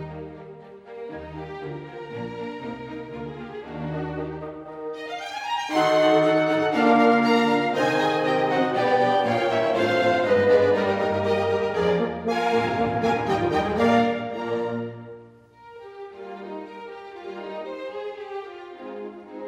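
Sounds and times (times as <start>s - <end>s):
horn concerto romanza: 3.4s - 15.5s.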